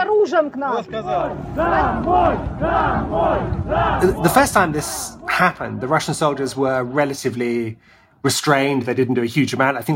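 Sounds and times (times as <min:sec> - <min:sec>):
speech: 0:00.2 - 0:09.9
protest crowd shouting at soldiers: 0:00.9 - 0:07.6.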